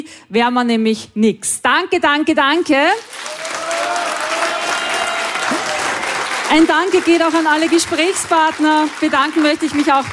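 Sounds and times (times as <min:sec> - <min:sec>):
speech: 0:00.1 - 0:03.6, 0:06.5 - 0:10.1
audience applause: 0:03.0 - 0:10.1.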